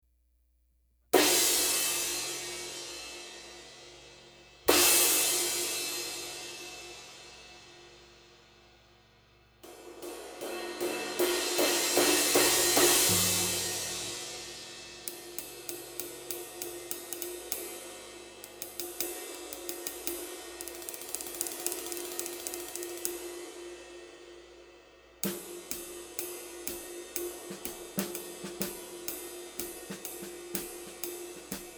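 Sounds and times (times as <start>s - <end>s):
Istanbul 22 inch flat ride cymbal: 1.2s - 31.7s.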